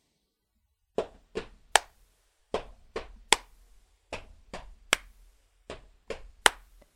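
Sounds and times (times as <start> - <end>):
stomping feet: 0.9 - 1.9, 2.5 - 6.7
hand clapping rhythm: 1.0 - 2.0, 2.6 - 6.9.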